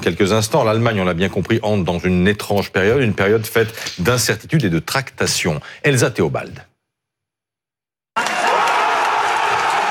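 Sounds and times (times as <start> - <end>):
speech: 0.0 - 6.7
crowd cheering: 8.2 - 9.9.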